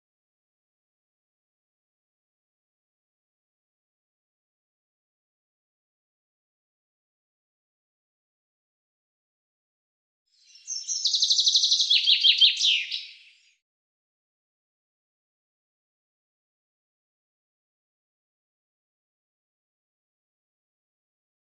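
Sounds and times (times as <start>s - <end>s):
bird trilling: 10.5s - 13.5s.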